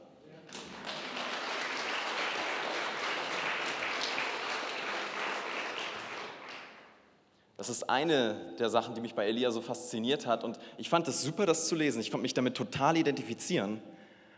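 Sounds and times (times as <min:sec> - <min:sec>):
crowd applause: 0:00.5 - 0:07.0
speech: 0:07.6 - 0:14.0.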